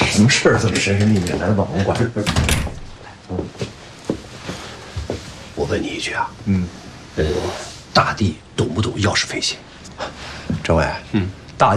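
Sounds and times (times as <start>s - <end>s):
speech: 0.2s - 2.7s, 3.3s - 3.8s, 5.7s - 11.7s
door being pulled shut: 2.2s - 2.9s.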